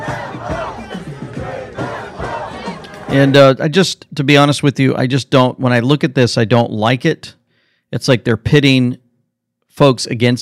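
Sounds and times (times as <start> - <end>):
crowd of protesters screaming and yelling: 0.0 - 3.4
speech: 3.1 - 9.0, 9.8 - 10.4.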